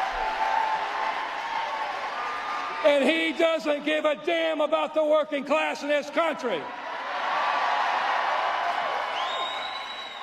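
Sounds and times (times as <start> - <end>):
large AI-generated crowd cheering: 0.0 - 3.8, 6.8 - 10.2
speech: 2.8 - 6.8.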